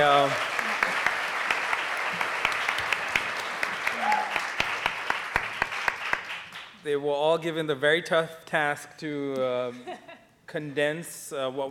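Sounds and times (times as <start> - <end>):
speech: 0.0 - 0.5, 6.8 - 11.6
crowd applauding: 0.0 - 6.8.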